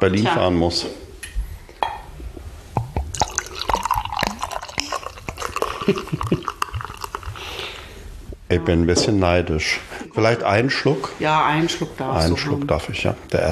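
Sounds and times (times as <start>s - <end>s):
speech: 0.0s - 1.0s, 5.9s - 6.1s, 8.5s - 13.5s
beer pouring into a glass: 3.1s - 7.8s
beer foam fizzing: 3.2s - 7.8s.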